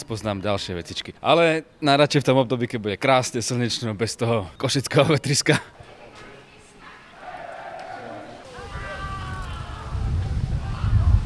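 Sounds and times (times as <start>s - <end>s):
speech: 0.1s - 5.8s
many overlapping voices of a lively main street crowd chattering: 3.0s - 11.2s.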